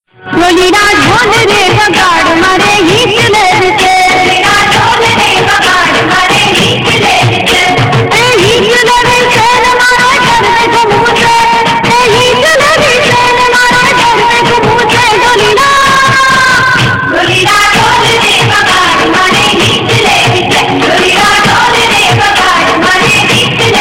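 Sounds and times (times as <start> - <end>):
dhol drumming: 0.4 - 23.8.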